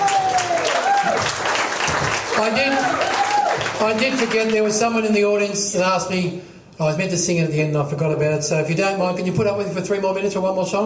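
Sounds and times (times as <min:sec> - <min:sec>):
audience applause for a performer at a live show: 0:00.0 - 0:04.7
speech: 0:02.4 - 0:03.2, 0:03.8 - 0:10.8.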